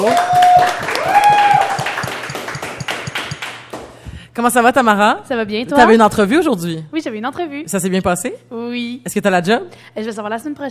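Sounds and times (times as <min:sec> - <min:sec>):
speech: 0:00.0 - 0:00.3, 0:04.4 - 0:10.6
audience applause: 0:00.0 - 0:03.9.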